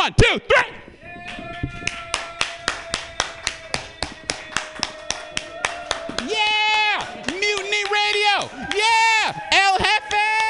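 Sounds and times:
speech: 0.0s - 1.9s, 8.4s - 10.2s
crowd cheering: 1.0s - 10.4s
audience clapping: 1.3s - 10.4s.

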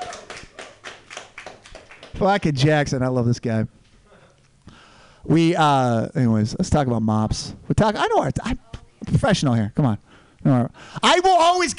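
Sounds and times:
audience applause: 0.0s - 2.2s
speech: 2.2s - 3.8s, 5.3s - 11.7s.

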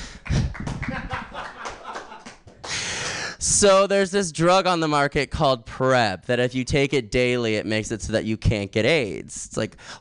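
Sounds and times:
audience clapping: 0.1s - 2.9s
laughter: 0.7s - 2.4s
speech: 3.6s - 10.0s.

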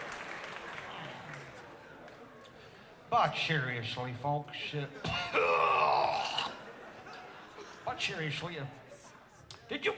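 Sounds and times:
crowd applause: 0.0s - 2.2s
speech: 3.1s - 5.7s, 8.0s - 8.8s, 9.7s - 9.9s.

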